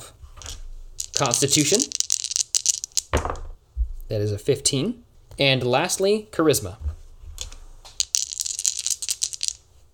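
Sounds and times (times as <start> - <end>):
dice rolling out of a dice tray: 0.4 - 3.5, 7.4 - 9.6
speech: 1.2 - 2.0, 4.1 - 7.0.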